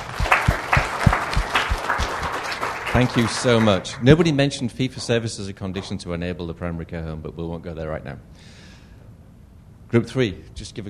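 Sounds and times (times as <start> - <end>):
audience applause at a group presentation: 0.0 - 4.4
speech: 3.0 - 8.6, 9.9 - 10.8.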